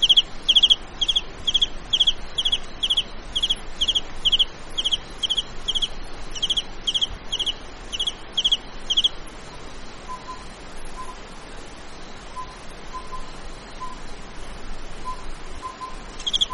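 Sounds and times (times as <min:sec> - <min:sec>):
cricket chirping in a mountain valley: 0:00.0 - 0:16.5
steady low hum: 0:00.0 - 0:16.5.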